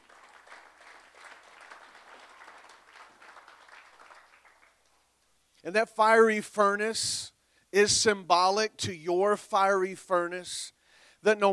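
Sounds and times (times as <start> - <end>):
audience hand clapping in praise: 0.0 - 5.2
speech: 5.6 - 11.5.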